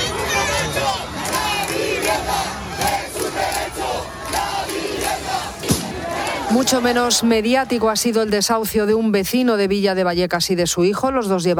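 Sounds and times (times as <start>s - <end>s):
protest crowd shouting: 0.0s - 8.5s
speech: 6.6s - 11.5s.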